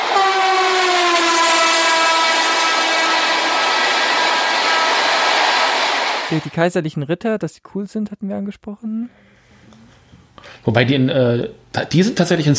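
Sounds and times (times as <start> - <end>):
train passing: 0.0 - 6.5
speech: 6.3 - 9.4, 10.4 - 12.5.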